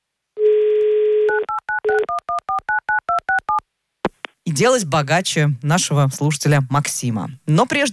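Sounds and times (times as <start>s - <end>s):
telephone dialing tones: 0.4s - 3.6s
speech: 4.6s - 7.9s.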